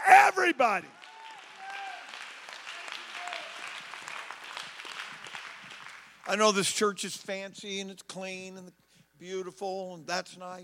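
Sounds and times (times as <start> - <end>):
speech: 0.4 - 1.0, 6.3 - 10.6
audience clapping hands: 0.6 - 7.0.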